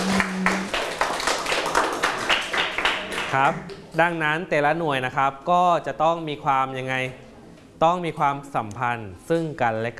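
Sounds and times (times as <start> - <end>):
classroom students clapping: 0.0 - 3.8
speech: 3.3 - 7.2, 7.8 - 9.9.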